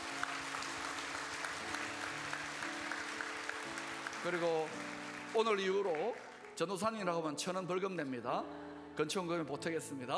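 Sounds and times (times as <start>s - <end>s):
audience applause: 0.0s - 6.6s
speech: 4.2s - 10.1s.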